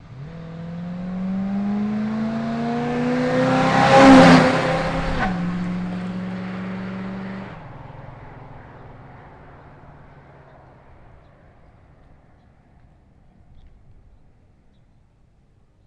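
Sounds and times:
Chevy Blazer engine: 0:00.0 - 0:13.2.

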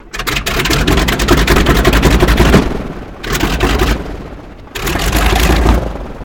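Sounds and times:
plane engine starting: 0:00.0 - 0:06.2.

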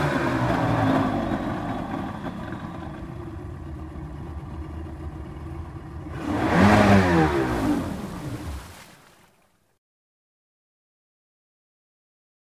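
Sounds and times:
Ranger boat engine starting, revving, idling and shutting off: 0:00.0 - 0:09.1.

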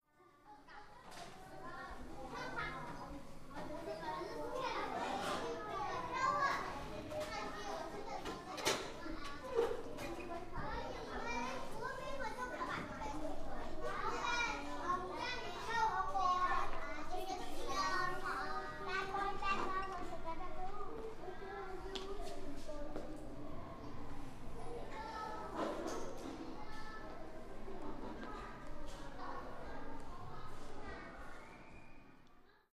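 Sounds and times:
interior school hall ambience: 0:00.2 - 0:32.7.

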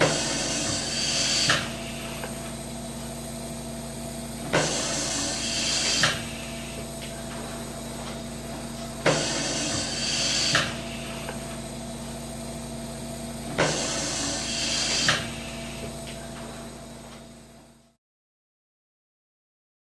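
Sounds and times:
noisy respirator pump: 0:00.0 - 0:18.0.

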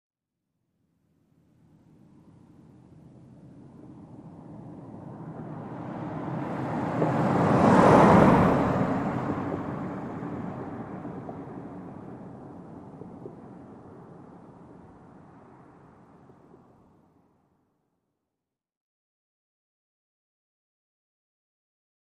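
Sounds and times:
sedan driving by at 25 mph: 0:03.6 - 0:16.6.

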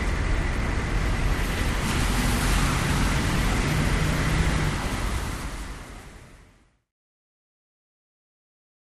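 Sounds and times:
cars passing on wet street: 0:00.0 - 0:06.9
medium city traffic: 0:00.0 - 0:06.9.

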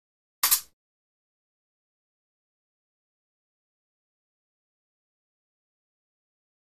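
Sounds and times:
fencing swords sliding: 0:00.4 - 0:00.7.

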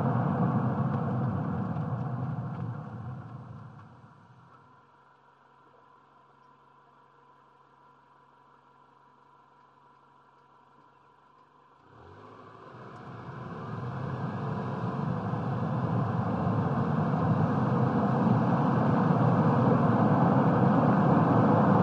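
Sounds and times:
small compact car driving at 55 to 65 mph: 0:00.0 - 0:04.0, 0:11.9 - 0:21.8.

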